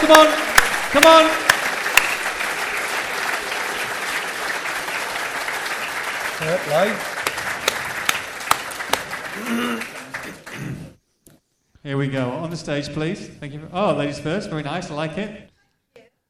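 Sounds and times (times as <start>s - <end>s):
audience applause: 0.0s - 11.0s
speech: 0.1s - 1.5s, 6.4s - 7.1s, 9.4s - 9.9s, 11.8s - 15.5s.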